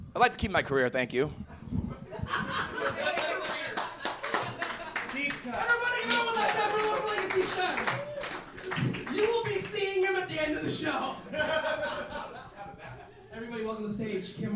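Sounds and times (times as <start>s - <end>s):
speech: 0.1s - 1.5s, 5.5s - 8.1s, 13.4s - 14.5s
laughter: 1.5s - 9.5s, 10.5s - 13.3s
audience clapping: 3.0s - 10.4s.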